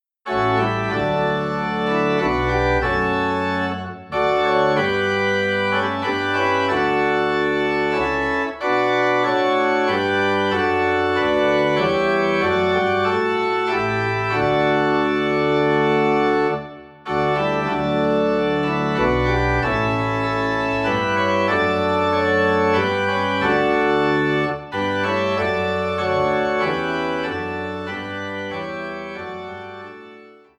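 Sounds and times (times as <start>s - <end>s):
organ playing in D: 0.3s - 30.5s.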